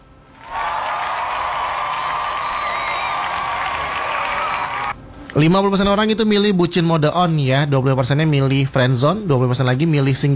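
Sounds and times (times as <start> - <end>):
crowd clapping: 0.4 - 5.0
speech: 5.3 - 10.3.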